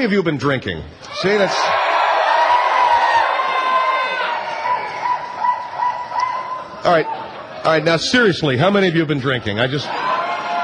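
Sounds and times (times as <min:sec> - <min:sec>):
speech: 0:00.0 - 0:01.8, 0:06.8 - 0:10.0
nightclub crowd cheering and shouting: 0:01.0 - 0:08.0, 0:09.5 - 0:10.6.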